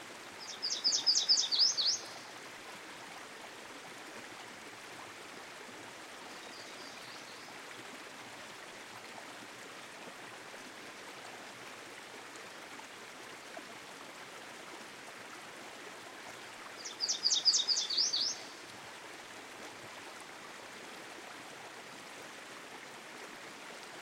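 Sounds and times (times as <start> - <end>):
stream flowing: 0.0 - 23.9
Yellow Warbler singing: 0.4 - 2.2, 16.8 - 18.5.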